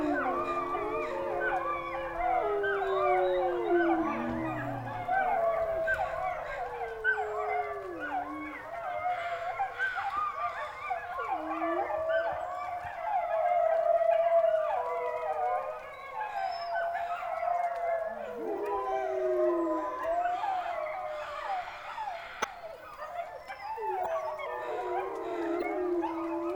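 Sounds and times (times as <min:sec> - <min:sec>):
wolf pack howling in the wilderness: 0:00.0 - 0:26.5.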